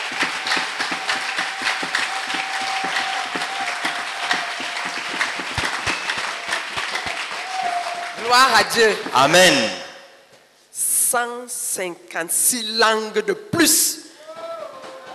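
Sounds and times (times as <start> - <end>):
audience clapping: 0.0 - 9.7
speech: 8.3 - 9.8, 11.1 - 14.0.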